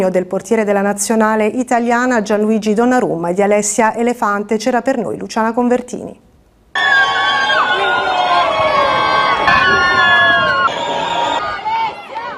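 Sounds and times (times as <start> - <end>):
speech: 0.0 - 7.2
wedding guests applauding newlyweds outside church: 6.8 - 12.3.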